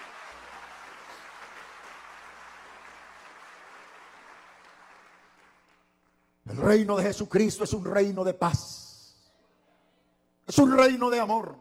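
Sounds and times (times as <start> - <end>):
audience applauding: 0.0 - 5.9
speech: 6.5 - 8.8, 10.6 - 11.5.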